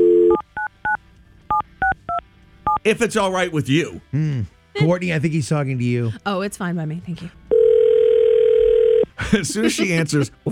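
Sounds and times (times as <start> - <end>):
telephone dial tone: 0.0 - 0.4, 7.5 - 9.1
telephone keypad beeps: 0.0 - 2.8
speech: 2.8 - 7.4, 9.2 - 10.5
laughter: 9.2 - 10.5.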